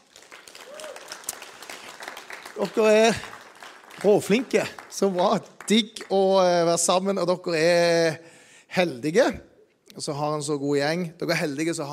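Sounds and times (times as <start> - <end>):
audience applause: 0.0 - 6.1
faint cheer: 0.5 - 1.4
speech: 2.6 - 3.3, 4.0 - 11.9.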